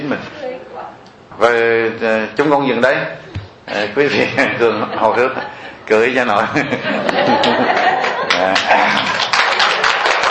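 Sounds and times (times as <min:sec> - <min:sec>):
speech: 0:00.1 - 0:07.8, 0:08.4 - 0:09.0
laughter: 0:04.0 - 0:10.0
audience clapping at a Buddhist dharma talk: 0:07.1 - 0:10.2.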